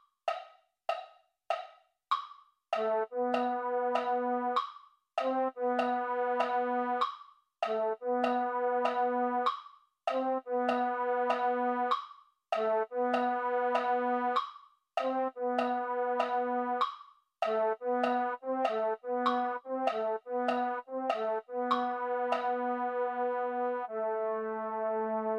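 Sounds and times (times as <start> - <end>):
MIDI baritone instrument: 2.8 - 4.6, 5.2 - 9.5, 10.1 - 12.0, 12.6 - 14.4, 15.0 - 25.3.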